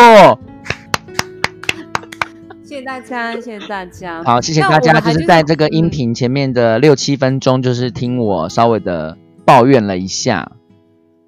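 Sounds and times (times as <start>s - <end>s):
audience applause: 0.7s - 2.4s
laughter: 1.4s - 5.8s
speech: 2.7s - 10.6s.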